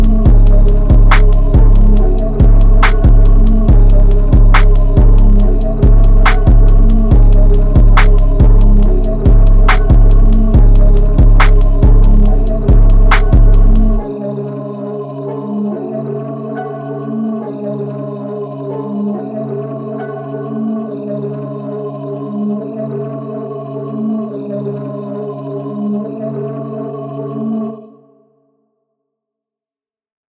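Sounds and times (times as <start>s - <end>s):
music beat: 0.0s - 14.1s.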